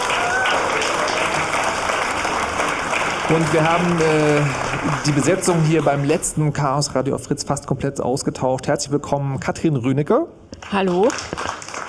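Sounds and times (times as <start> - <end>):
faint whistle or cheer: 0.0 - 0.7
audience applause: 0.0 - 6.6, 10.6 - 11.8
speech: 3.3 - 11.6.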